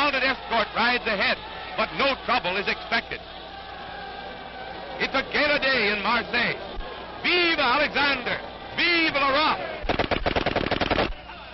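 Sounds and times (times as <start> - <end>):
speech: 0.4 - 3.4, 5.0 - 9.7
gunshots fired at a crowd: 9.8 - 11.2.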